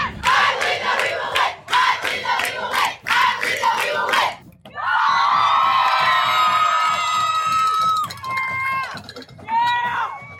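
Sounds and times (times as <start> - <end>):
student supporters chanting at a Muskego Warriors varsity football game: 0.0 - 4.4
crowd cheering roar with whoops: 4.7 - 10.3.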